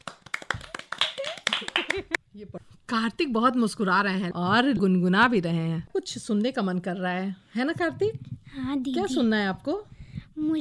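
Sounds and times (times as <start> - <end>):
applause, clapping hands: 0.0 - 2.2
speech: 1.6 - 10.5.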